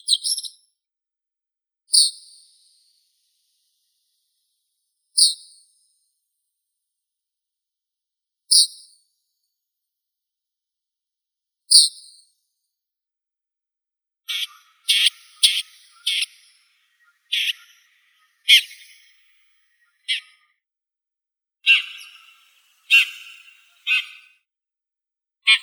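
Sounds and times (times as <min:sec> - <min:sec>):
red-backed shrike Lanius collurio calling: 0:14.3 - 0:20.5, 0:21.6 - 0:24.4, 0:25.5 - 0:25.6.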